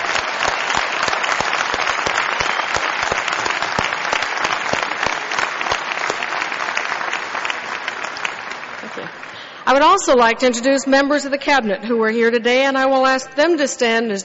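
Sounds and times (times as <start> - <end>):
crowd applause: 0.0 - 9.6
speech: 9.7 - 14.2.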